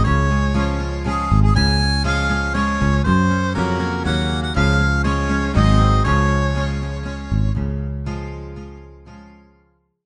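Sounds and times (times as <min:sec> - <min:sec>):
birthday song in D flat: 0:00.0 - 0:07.7.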